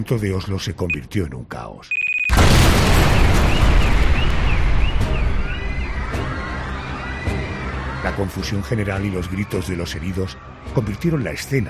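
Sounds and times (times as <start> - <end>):
speech: 0.0 - 2.0, 8.0 - 11.6
car bomb explosion: 2.3 - 6.1.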